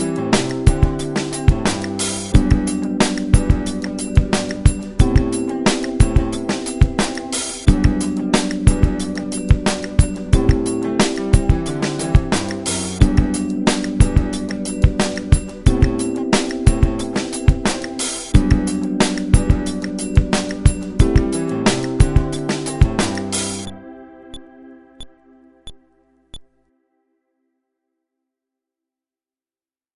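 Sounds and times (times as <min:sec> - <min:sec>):
fretless bass groove: 0:00.0 - 0:23.7.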